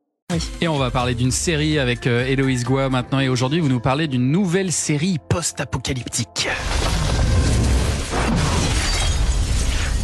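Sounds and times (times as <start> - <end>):
speech: 0.3 - 7.0
crackling debris: 6.5 - 10.0
massive nuclear explosion rumbling: 6.6 - 10.0.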